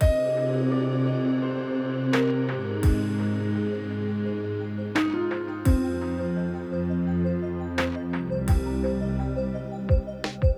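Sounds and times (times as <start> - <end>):
piano: 0.0 - 10.5.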